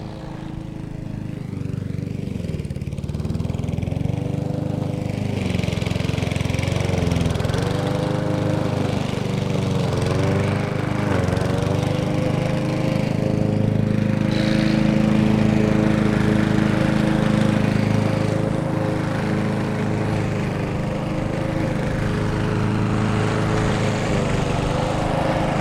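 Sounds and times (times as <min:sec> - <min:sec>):
mowing: 0:00.0 - 0:25.5
weeding: 0:07.0 - 0:25.5.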